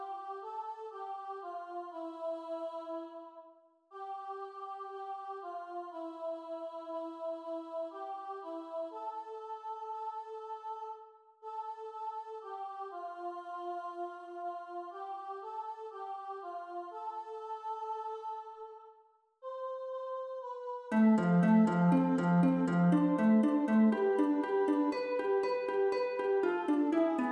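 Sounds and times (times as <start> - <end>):
harp: 20.9 - 27.2.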